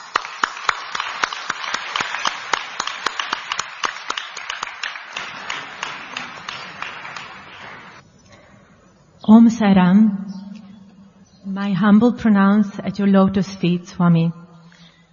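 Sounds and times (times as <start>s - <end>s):
audience applause: 0.0s - 8.0s
speech: 9.3s - 10.3s, 11.5s - 14.4s.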